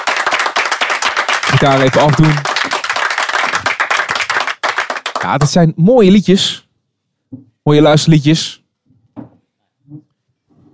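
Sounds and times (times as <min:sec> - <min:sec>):
audience applause: 0:00.0 - 0:05.6
speech: 0:01.6 - 0:02.5, 0:05.2 - 0:06.6, 0:07.3 - 0:08.6.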